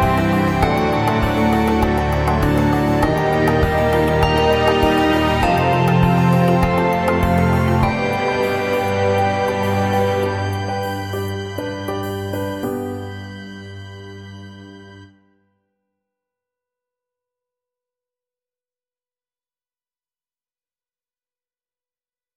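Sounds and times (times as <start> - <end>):
bells: 0.0 - 14.6.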